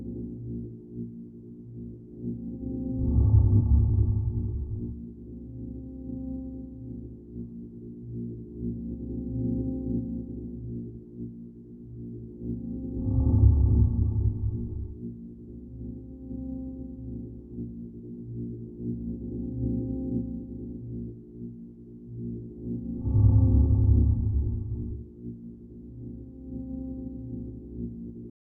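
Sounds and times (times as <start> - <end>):
background ambience: 1.6 - 28.3.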